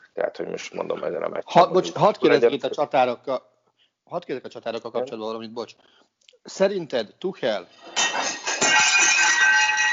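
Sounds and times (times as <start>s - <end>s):
speech: 0.2s - 3.5s, 4.1s - 8.3s
plate falling in the apartment: 8.0s - 9.9s.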